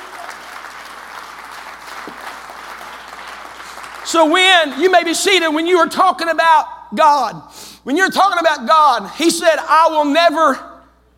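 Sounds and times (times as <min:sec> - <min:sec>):
audience clapping hands: 0:00.0 - 0:05.4
speech: 0:04.1 - 0:10.7.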